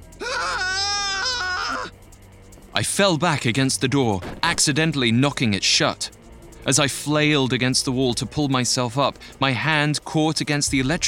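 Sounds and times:
person screaming in terror: 0.2s - 1.9s
speech: 2.8s - 11.0s.

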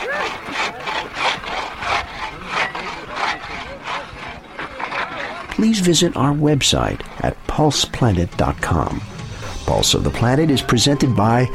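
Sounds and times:
antique ice saw cutting through ice: 0.0s - 6.8s
speech: 5.6s - 9.1s, 9.7s - 11.5s.

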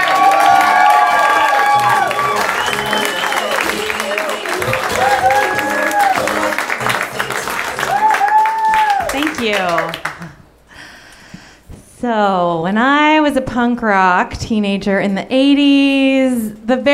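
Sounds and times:
audience applause: 0.0s - 10.3s
speech: 9.4s - 10.1s, 12.0s - 16.9s.

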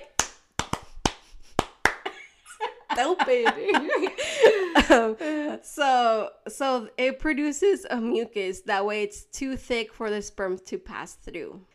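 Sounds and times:
hand claps imitating buttocks clapping: 0.0s - 3.2s
laughter: 2.0s - 5.6s
speech: 3.0s - 11.7s.

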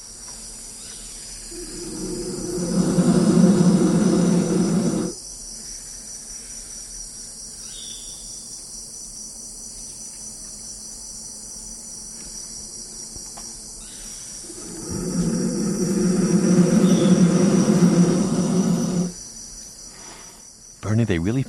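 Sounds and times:
baby black vultures roaring in nest hollow: 1.5s - 5.2s, 14.4s - 19.2s.

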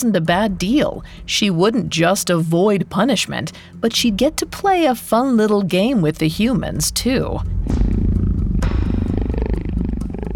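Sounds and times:
speech: 0.0s - 7.8s
big cat purring: 7.1s - 10.3s.

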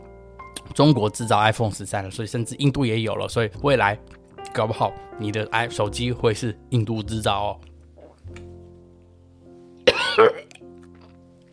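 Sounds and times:
speech: 0.8s - 7.7s, 10.2s - 10.4s
cough: 9.8s - 10.6s.

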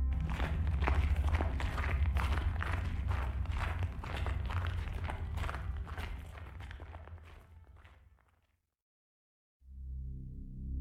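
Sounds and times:
footsteps crunching on snow: 0.2s - 8.4s.

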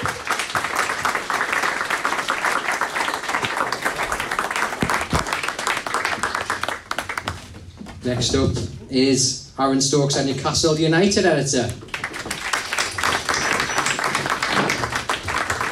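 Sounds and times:
audience applause: 0.0s - 7.6s, 11.9s - 15.6s
speech: 8.0s - 11.8s.

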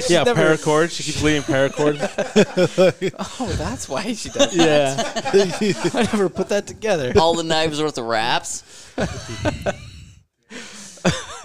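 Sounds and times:
laughter: 0.0s - 7.8s, 8.8s - 11.4s
speech: 0.0s - 9.9s
heavy breathing into a microphone: 8.6s - 11.1s.

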